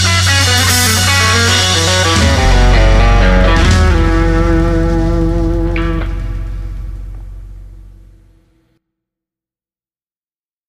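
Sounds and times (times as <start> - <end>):
808 drum machine blues jam: 0.0 - 8.3.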